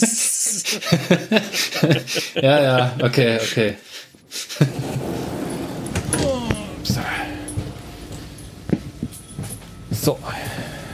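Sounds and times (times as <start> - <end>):
speech: 0.0 - 3.9, 4.6 - 5.4, 10.0 - 10.6
laughter: 0.0 - 5.3
keys jangling as a key is taken out: 5.2 - 10.2.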